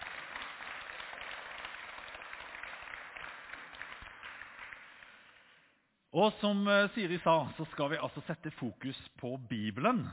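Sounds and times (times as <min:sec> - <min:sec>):
audience applause: 0:00.0 - 0:05.5
speech: 0:06.1 - 0:10.1.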